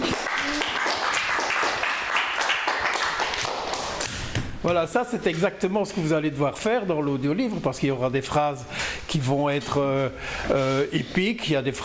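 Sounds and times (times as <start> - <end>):
crowd clapping applause: 0.0 - 4.2
speech: 4.7 - 11.8.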